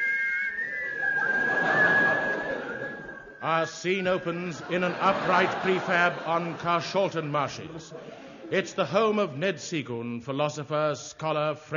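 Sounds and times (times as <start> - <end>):
person whistling a tune: 0.0 - 4.3
laughter: 0.6 - 9.2
speech: 3.4 - 11.7.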